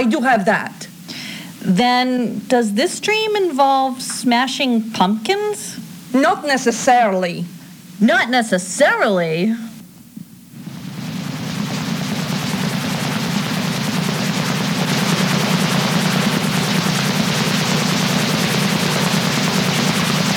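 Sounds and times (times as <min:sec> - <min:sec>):
speech: 0:00.0 - 0:00.8, 0:01.6 - 0:09.7
military helicopter hovering overhead: 0:10.5 - 0:20.3.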